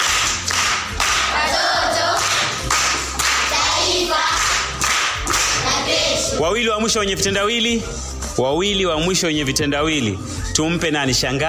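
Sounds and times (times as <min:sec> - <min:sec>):
hands clapping at a children's riddle session: 0:00.0 - 0:05.9
speech: 0:06.4 - 0:11.4.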